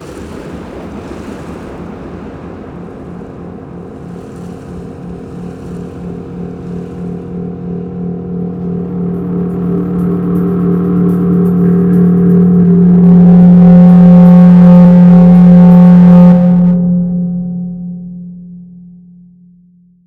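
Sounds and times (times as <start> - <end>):
building thunder: 0.0 - 16.3.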